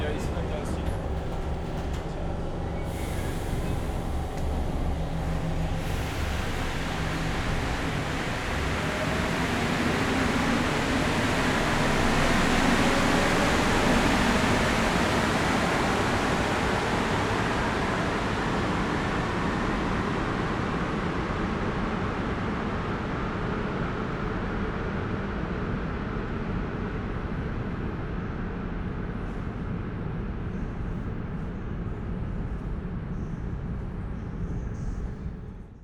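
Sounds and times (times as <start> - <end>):
voices on a metro platform: 0.0 - 8.2
metro train arriving and departing at a platform in Marseille: 0.0 - 35.8.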